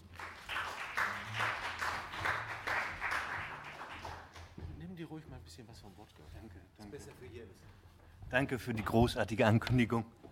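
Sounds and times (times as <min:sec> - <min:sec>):
audience applause: 0:00.0 - 0:04.6
speech: 0:05.0 - 0:10.3.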